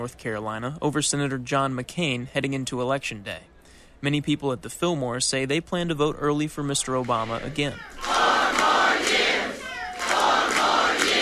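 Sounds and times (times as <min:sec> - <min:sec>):
speech: 0:00.0 - 0:08.2
crowd chanting a rally slogan: 0:07.2 - 0:11.2.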